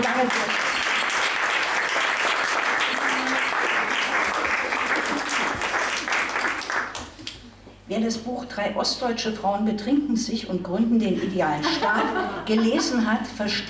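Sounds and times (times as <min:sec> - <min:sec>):
applause: 0:00.0 - 0:07.1
speech: 0:00.2 - 0:00.5, 0:08.0 - 0:13.6
laughter: 0:11.6 - 0:13.1.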